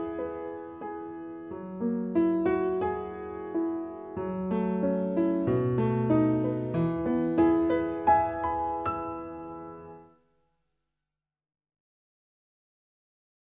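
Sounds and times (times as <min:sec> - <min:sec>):
piano: 0:00.0 - 0:10.4.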